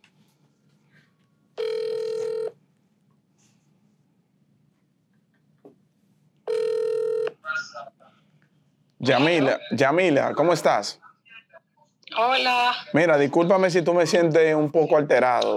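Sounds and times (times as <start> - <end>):
phone line ringing while placing a call: 1.6 - 2.6, 6.5 - 7.4
speech: 9.0 - 11.0, 12.2 - 15.5.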